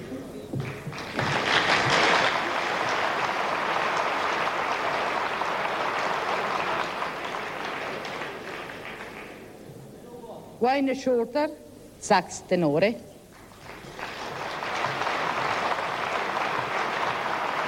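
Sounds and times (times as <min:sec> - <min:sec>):
audience applause: 0:00.0 - 0:09.6, 0:13.4 - 0:17.6
speech: 0:10.6 - 0:13.1.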